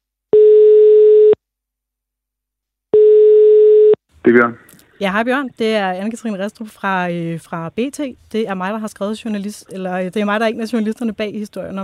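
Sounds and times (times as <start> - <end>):
telephone ringing tone while placing a call: 0.3 - 1.4, 3.0 - 4.0
speech: 4.2 - 11.8.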